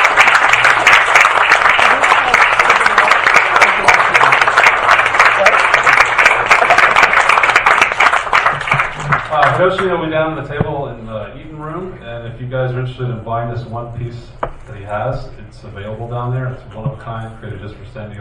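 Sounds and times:
crowd applauding: 0.0s - 9.9s
speech: 9.6s - 10.8s, 12.3s - 18.1s.

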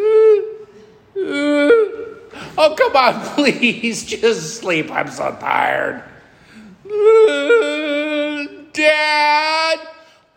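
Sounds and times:
voice imitating a small child's whimper: 1.2s - 2.2s, 6.8s - 8.7s
speech: 2.6s - 6.1s, 8.8s - 9.9s.

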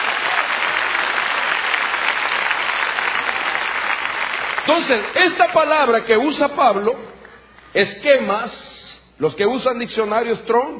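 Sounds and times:
crowd clapping: 0.0s - 6.4s
speech: 4.7s - 7.1s, 7.7s - 10.7s.

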